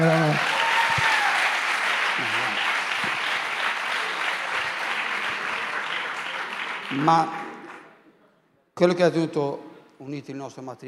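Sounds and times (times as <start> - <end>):
audience applause at a talk on marriage: 0.0 - 8.0
speech: 7.0 - 7.4, 8.8 - 10.8.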